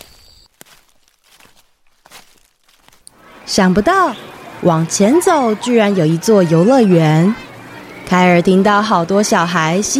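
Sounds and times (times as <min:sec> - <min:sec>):
footsteps crunching: 0:00.0 - 0:03.2
speech: 0:03.5 - 0:07.4, 0:08.1 - 0:09.9.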